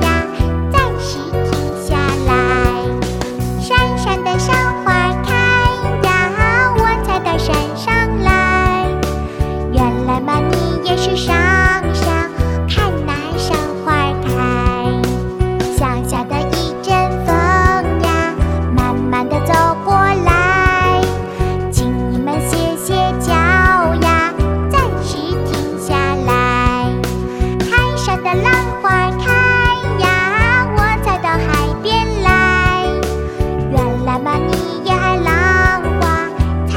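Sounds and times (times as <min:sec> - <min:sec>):
song cover: 0:00.0 - 0:36.7.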